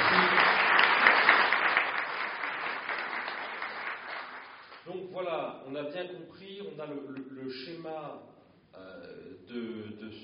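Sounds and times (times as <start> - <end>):
audience applauding: 0.0 - 4.9
speech: 5.7 - 10.2.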